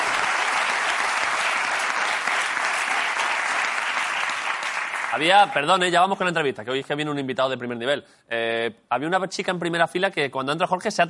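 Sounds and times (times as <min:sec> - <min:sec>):
audience applause: 0:00.0 - 0:05.8
speech: 0:05.1 - 0:11.0.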